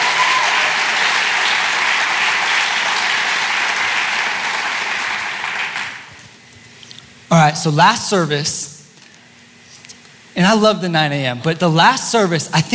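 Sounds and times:
crowd applause: 0.0s - 6.1s
speech: 7.4s - 8.7s, 10.4s - 12.7s.

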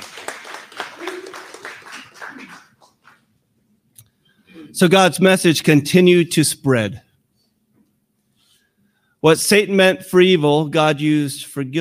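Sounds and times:
audience applause: 0.0s - 3.2s
speech: 4.7s - 7.1s, 9.2s - 11.7s.

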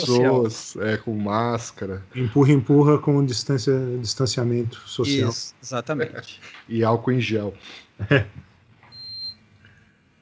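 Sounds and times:
laughter: 0.0s - 2.6s, 5.0s - 5.4s, 8.0s - 8.4s
speech: 0.0s - 8.5s
low steady hum: 0.0s - 10.1s
single high-pitched electronic beep from a digital thermometer: 8.9s - 9.4s.

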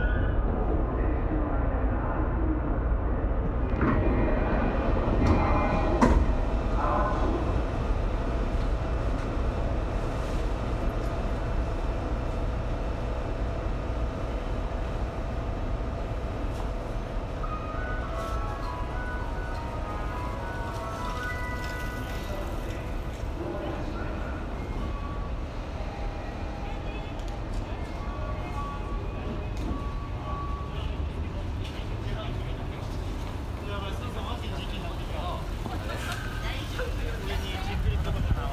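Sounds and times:
train clacks and squeals: 0.0s - 1.0s, 3.4s - 7.9s, 17.3s - 31.9s
Tokyo train carriage rumble: 0.0s - 38.5s.

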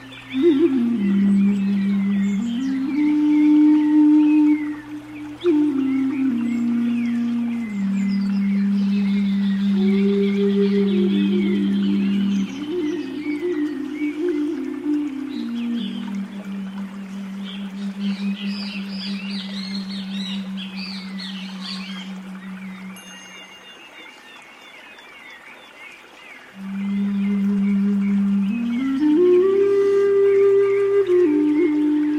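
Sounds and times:
faint wavering whale-like tones: 0.0s - 24.4s, 26.5s - 32.1s.

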